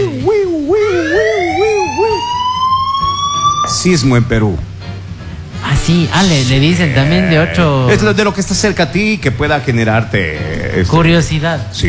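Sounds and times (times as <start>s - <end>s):
earthquake warning app alarm: 0.8s - 3.9s
speech: 3.8s - 4.7s, 5.8s - 11.8s.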